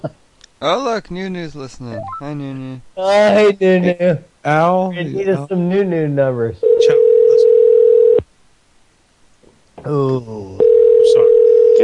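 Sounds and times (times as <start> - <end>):
speech: 0.0 - 7.0, 9.8 - 10.7
telephone dial tone after hanging up: 6.6 - 8.2, 10.6 - 11.8.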